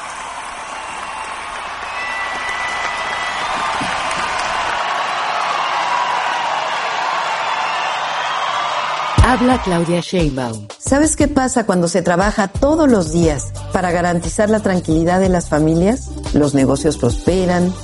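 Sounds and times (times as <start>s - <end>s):
audience applause: 0.0s - 9.9s
speech: 9.3s - 17.8s.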